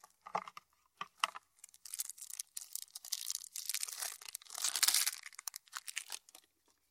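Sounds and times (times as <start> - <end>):
plastic wrap tearing as packs of Fairytale Gloom board game cards are opened: 1.6 - 6.4.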